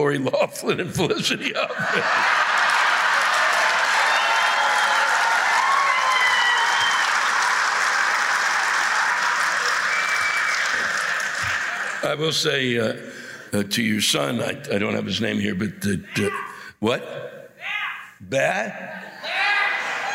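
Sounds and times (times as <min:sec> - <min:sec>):
speech: 0:00.0 - 0:02.6, 0:12.0 - 0:17.3, 0:18.2 - 0:19.1
laughter: 0:00.0 - 0:03.7, 0:18.9 - 0:20.1
large audience applause: 0:01.8 - 0:12.5
faint cheers: 0:02.6 - 0:12.0.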